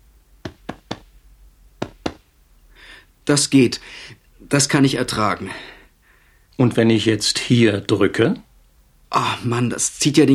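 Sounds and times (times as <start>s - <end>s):
doctor tapping on patient's left flank: 0.4s - 1.1s, 1.8s - 2.3s
speech: 3.3s - 5.8s, 6.6s - 8.5s, 9.1s - 10.3s.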